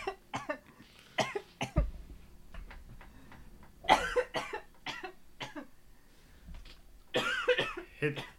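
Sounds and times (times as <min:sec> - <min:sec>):
harsh coughing after a hard hit from a bong: 0:00.0 - 0:01.8, 0:03.8 - 0:05.7, 0:07.1 - 0:08.3.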